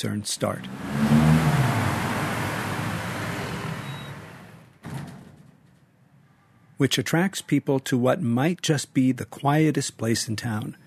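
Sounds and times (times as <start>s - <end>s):
speech: 0.0s - 1.2s, 6.8s - 10.8s
steady traffic rumble on a city street: 0.0s - 4.8s.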